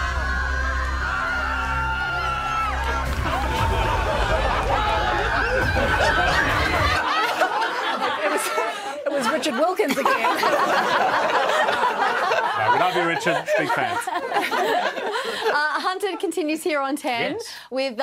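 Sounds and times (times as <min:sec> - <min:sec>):
girls screaming excitedly: 0:00.0 - 0:07.1
laughter: 0:02.4 - 0:16.3
speech: 0:08.5 - 0:18.0.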